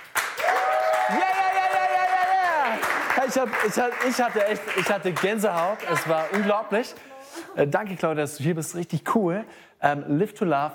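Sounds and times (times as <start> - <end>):
studio crew clapping: 0.0 - 6.9
sustained vocal cheer: 0.4 - 2.8
speech: 1.1 - 1.4, 3.3 - 10.7.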